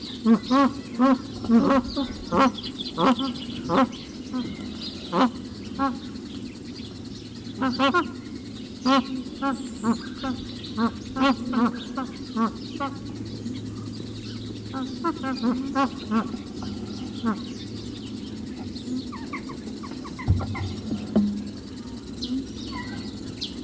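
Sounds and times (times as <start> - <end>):
magpie goose call: 0.1 - 6.1, 7.5 - 8.2, 8.8 - 13.6, 14.3 - 21.6, 22.2 - 23.2.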